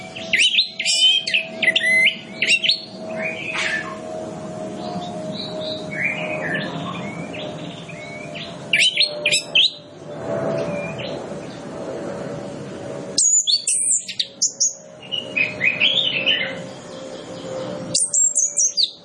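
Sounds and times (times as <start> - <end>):
Orange-headed Thrush singing: 0.0 - 3.9, 4.8 - 9.8, 13.2 - 19.0
steady noisy background: 0.0 - 19.0.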